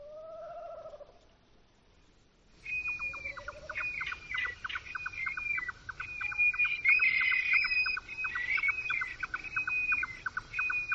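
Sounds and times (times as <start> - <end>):
Eurasian stone-curlew calling at night: 2.6 - 10.9
chorus of rapid high chirps and trills: 2.6 - 10.9.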